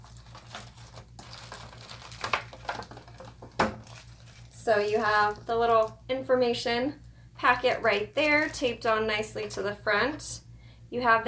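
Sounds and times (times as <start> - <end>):
papery rustling of an Arctic Air Freedom device sliding out of its box: 0.0 - 6.0, 7.5 - 9.6
speech: 4.7 - 11.2.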